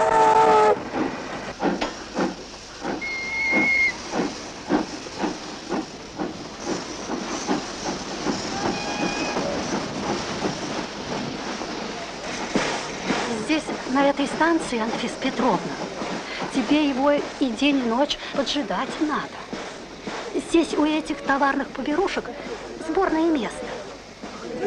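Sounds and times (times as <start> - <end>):
steam train hissing at Inskaya railway station: 0.0 - 24.6
whistle-like tones: 3.0 - 4.0
speech: 14.4 - 15.8, 16.7 - 19.4, 20.5 - 22.4, 23.0 - 23.6.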